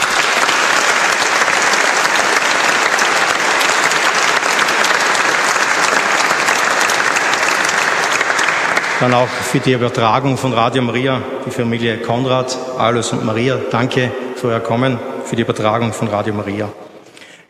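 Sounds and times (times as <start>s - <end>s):
audience applause: 0.0s - 10.0s
speech: 9.0s - 16.9s.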